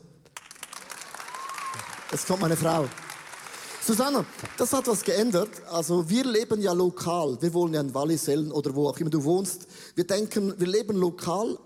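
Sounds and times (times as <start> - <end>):
applause: 0.3 - 5.6
speech: 2.1 - 3.0, 3.9 - 11.6.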